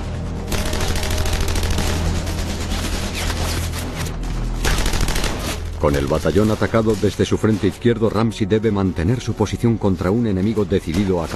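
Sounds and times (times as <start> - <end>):
rifle and machine-gun fire from German troops in a World War II battle: 0.5 - 3.8, 4.6 - 7.2
speech: 5.8 - 11.3.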